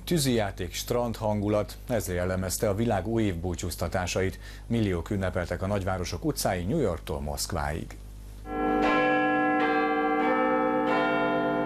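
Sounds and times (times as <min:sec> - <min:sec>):
speech: 0:00.1 - 0:08.0
Big Ben clock tower bell chiming at midnight in London: 0:08.5 - 0:11.6.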